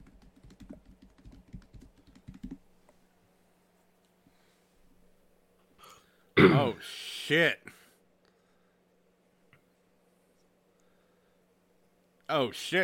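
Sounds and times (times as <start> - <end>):
typing on a computer keyboard: 0.0 - 2.6
speech: 6.4 - 7.7, 12.3 - 12.8.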